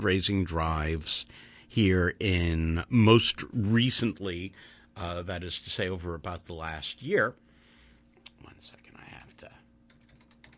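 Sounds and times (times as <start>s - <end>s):
speech: 0.0s - 7.4s
typing on a computer keyboard: 9.9s - 10.5s.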